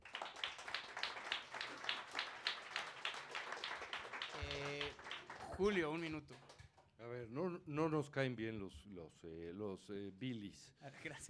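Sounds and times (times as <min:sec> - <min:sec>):
audience applause: 0:00.0 - 0:06.6
speech: 0:05.6 - 0:06.5, 0:07.1 - 0:11.2.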